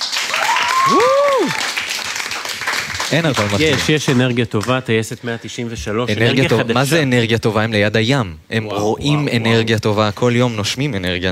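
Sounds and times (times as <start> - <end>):
crowd applauding: 0.0 - 4.8
speech: 0.9 - 1.6, 3.1 - 11.3.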